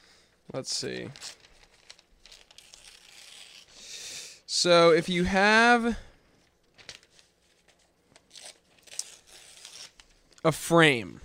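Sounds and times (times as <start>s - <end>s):
speech: 0.5s - 1.4s, 4.6s - 6.1s, 10.4s - 11.2s
handheld prop tearing: 1.8s - 3.7s, 8.3s - 10.1s.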